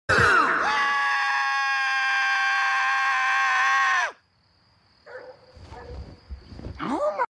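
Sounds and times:
person screaming: 0.1s - 4.2s.

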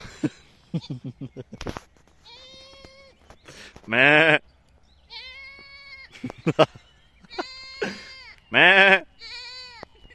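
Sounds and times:
goat bleating: 2.2s - 3.2s, 5.1s - 6.2s, 7.3s - 9.9s.

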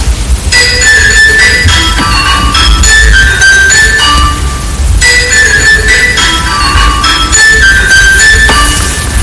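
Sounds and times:
high school bell ringing: 0.5s - 9.2s.

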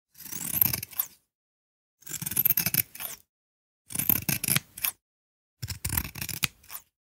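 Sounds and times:
scissors: 0.1s - 1.2s, 2.0s - 3.3s, 3.9s - 5.0s, 5.6s - 7.0s.

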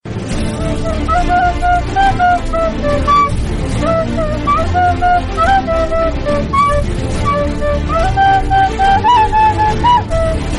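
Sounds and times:
Caribbean flutes alert: 0.5s - 10.5s.

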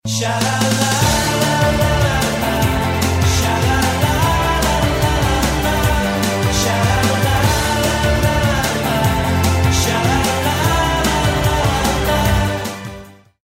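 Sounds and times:
person singing shalalala: 0.0s - 13.0s.

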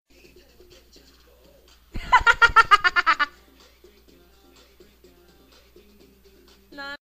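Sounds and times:
person laughing: 2.0s - 3.4s.

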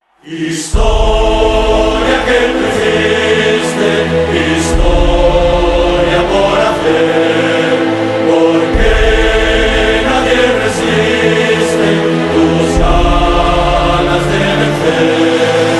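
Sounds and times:
football club anthem: 0.0s - 15.7s.

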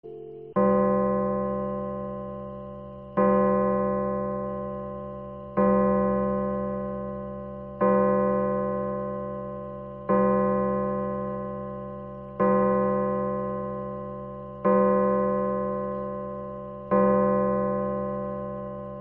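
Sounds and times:
pendulum clock striking twelve: 0.1s - 18.9s.

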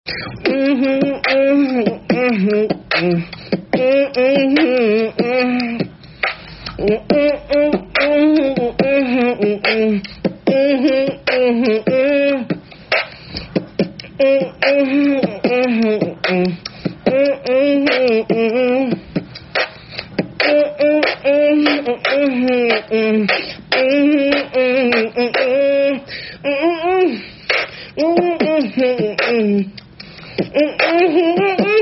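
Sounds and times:
beatbox: 0.1s - 31.8s.

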